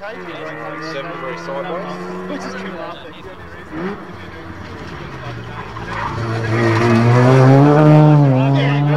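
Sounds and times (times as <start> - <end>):
rotary-engined RX4 race car downshifting through close-ratio gears: 0.0 - 8.9.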